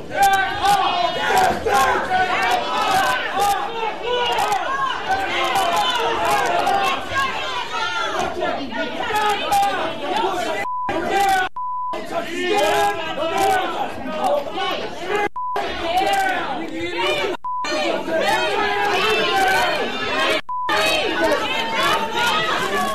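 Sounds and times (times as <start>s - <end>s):
protest crowd shouting at City Hall in Sacramento, California: 0.0s - 22.9s
short beeps: 10.6s - 11.0s, 11.6s - 12.0s, 15.4s - 15.6s, 17.4s - 17.8s, 20.4s - 20.9s.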